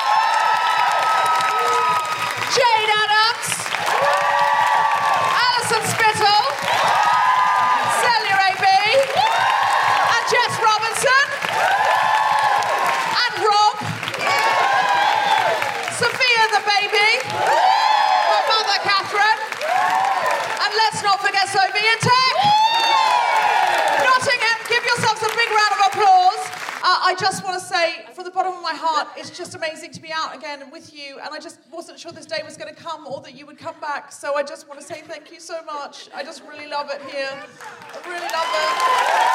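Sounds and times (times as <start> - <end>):
audience applause: 0.0 - 26.8, 37.4 - 39.3
speech: 26.9 - 39.3.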